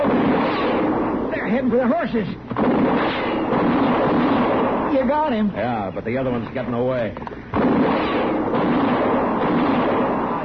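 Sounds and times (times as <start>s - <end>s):
gunshot in an outdoor Western shootout: 0.0s - 1.2s, 2.5s - 5.0s, 7.5s - 10.4s
speech: 1.5s - 3.2s, 4.9s - 8.8s.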